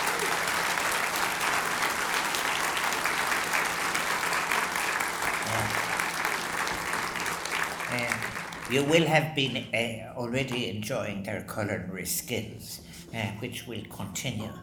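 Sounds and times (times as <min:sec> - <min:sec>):
audience applause for catering staff at Áras an Uachtaráin: 0:00.0 - 0:09.2
speech: 0:08.7 - 0:14.6.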